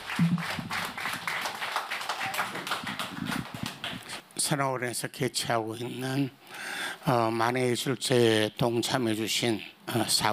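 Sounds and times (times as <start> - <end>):
audience applause: 0.0 - 4.2
speech: 0.2 - 0.7, 4.5 - 6.4, 7.0 - 10.3.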